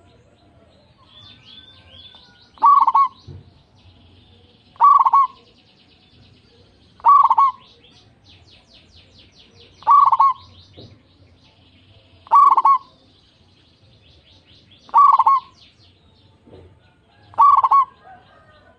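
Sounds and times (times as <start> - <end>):
zebra dove cooing: 2.6 - 3.2, 4.8 - 5.5, 7.0 - 7.9, 9.8 - 10.6, 12.2 - 13.0, 14.9 - 15.6, 16.8 - 18.7.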